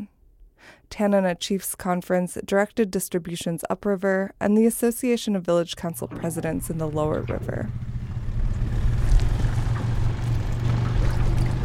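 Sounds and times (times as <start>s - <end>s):
speech: 0.6s - 7.9s
tender boat motoring up the cold rainy Yukon: 5.8s - 11.6s.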